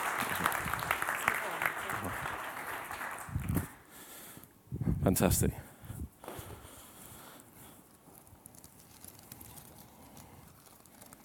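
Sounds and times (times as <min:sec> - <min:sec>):
audience clapping: 0:00.0 - 0:03.9
speech: 0:05.1 - 0:05.7.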